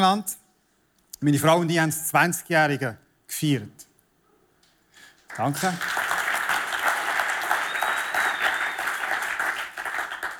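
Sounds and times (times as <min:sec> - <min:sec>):
speech: 0:00.0 - 0:00.4, 0:01.2 - 0:03.9, 0:05.3 - 0:06.0
audience applause: 0:05.3 - 0:10.3
faint high whistle: 0:07.4 - 0:09.0.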